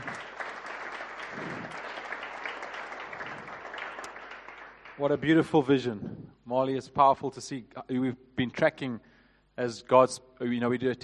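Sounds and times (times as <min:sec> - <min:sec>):
audience clapping: 0:00.0 - 0:05.6
speech: 0:05.0 - 0:11.0.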